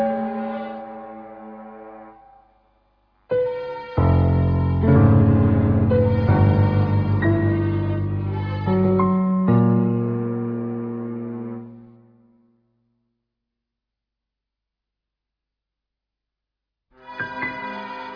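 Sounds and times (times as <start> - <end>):
domestic chamber music: 0.0 - 2.6, 3.3 - 12.1, 17.0 - 18.1.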